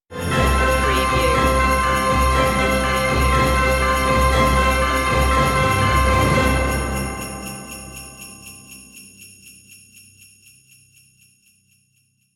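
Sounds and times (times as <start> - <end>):
ho ho ho merry christmas music stinger without vocals: 0.1 - 8.8.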